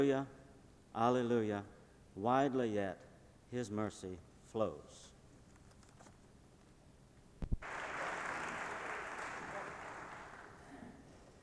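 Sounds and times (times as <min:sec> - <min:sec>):
speech: 0:00.0 - 0:00.4, 0:01.0 - 0:05.1
audience applause: 0:07.6 - 0:10.9.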